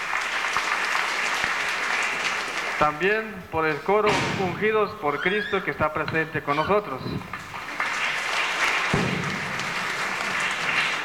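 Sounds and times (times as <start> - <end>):
audience applauding local church choirs: 0.0 - 3.0, 6.5 - 11.0
speech: 2.8 - 7.4.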